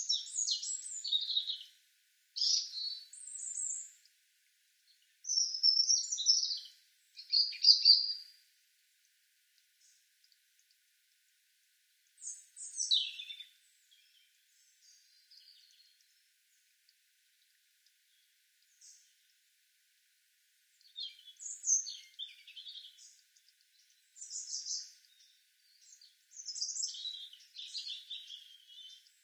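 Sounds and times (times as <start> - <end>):
European robin Erithacus rubecula singing: 0.0 - 1.8, 2.4 - 4.1, 4.9 - 8.3, 12.2 - 16.1, 20.8 - 29.2.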